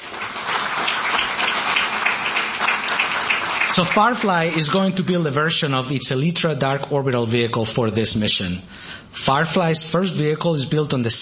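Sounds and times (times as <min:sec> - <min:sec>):
audience applause: 0:00.0 - 0:04.6
speech: 0:03.8 - 0:11.2.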